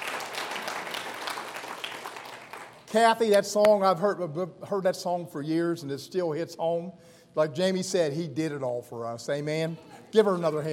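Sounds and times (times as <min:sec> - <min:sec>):
audience clapping for the kids at a morning service: 0:00.0 - 0:03.8
speech: 0:02.9 - 0:10.7.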